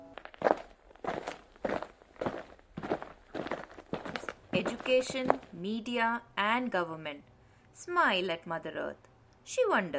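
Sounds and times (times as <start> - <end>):
footsteps of figures walking closer: 0.0 - 5.7
speech: 4.6 - 9.9.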